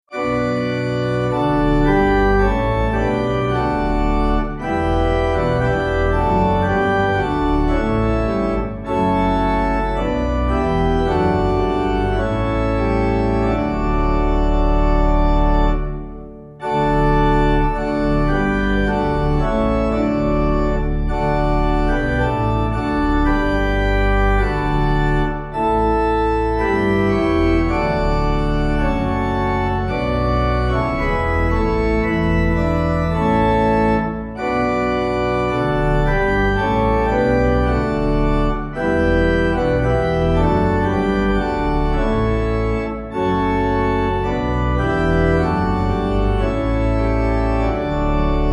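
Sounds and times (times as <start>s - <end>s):
pipe organ: 0.0s - 48.5s.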